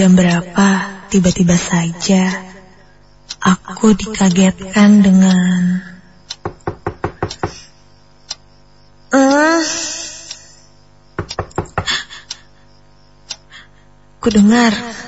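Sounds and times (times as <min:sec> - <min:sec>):
speech: 0:00.0 - 0:02.5, 0:03.4 - 0:06.6, 0:14.2 - 0:15.0
knocking on a bedroom door in the middle of the night: 0:06.4 - 0:07.6, 0:11.2 - 0:12.0.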